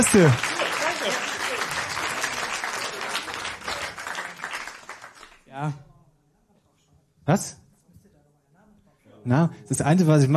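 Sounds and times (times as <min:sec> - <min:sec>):
speech: 0:00.0 - 0:01.2, 0:05.6 - 0:05.8, 0:07.2 - 0:07.6, 0:09.2 - 0:10.3
audience applause: 0:00.0 - 0:05.5.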